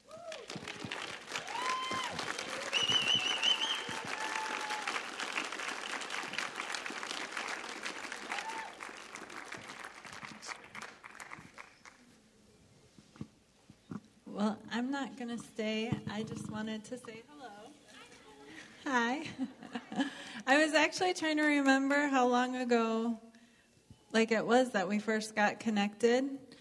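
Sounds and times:
congregation applauding at a Sunday church service: 0.0s - 12.1s
speech: 14.8s - 17.3s, 18.9s - 23.2s, 24.2s - 26.4s.

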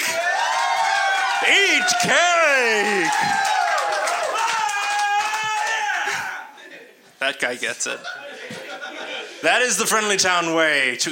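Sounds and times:
audience applause: 0.0s - 6.2s
speech: 1.4s - 3.6s, 7.2s - 8.3s, 9.4s - 11.1s
laughter: 7.9s - 9.8s.

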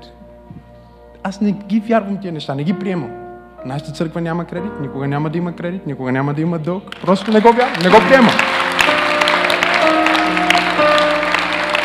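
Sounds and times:
speech: 1.2s - 8.6s
audience applauding: 6.9s - 11.8s.

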